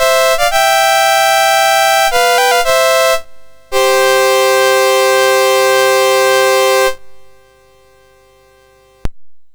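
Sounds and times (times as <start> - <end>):
classical piece played on a MOS6581R2 chip: 0.0 - 7.0.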